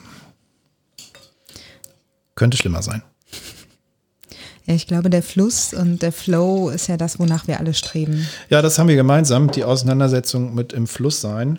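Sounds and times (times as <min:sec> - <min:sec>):
glass being handed over, clinking: 0:01.0 - 0:01.4, 0:06.8 - 0:08.3
speech: 0:02.4 - 0:03.1, 0:04.7 - 0:11.5.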